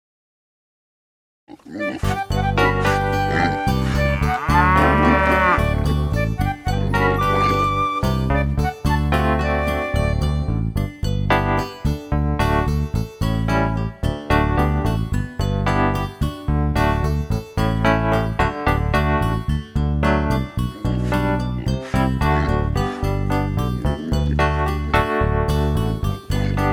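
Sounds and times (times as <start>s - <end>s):
instrumental music: 2.0s - 26.7s.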